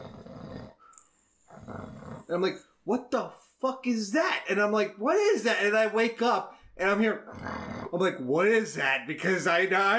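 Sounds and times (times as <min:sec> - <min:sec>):
person imitating a growly snore: 0:00.0 - 0:00.8, 0:01.5 - 0:02.3, 0:07.3 - 0:08.0
speech: 0:02.3 - 0:09.9.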